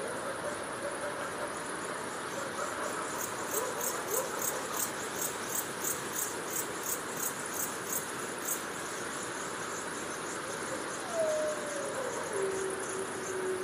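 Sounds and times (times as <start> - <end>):
crickets chirping: 0.0 - 13.6
gray wolf howling: 11.0 - 13.6.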